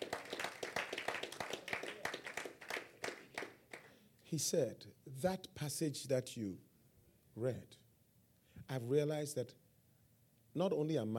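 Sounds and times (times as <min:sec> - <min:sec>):
audience clapping: 0:00.0 - 0:04.0
speech: 0:04.3 - 0:06.7, 0:07.4 - 0:07.8, 0:08.7 - 0:09.6, 0:10.6 - 0:11.1.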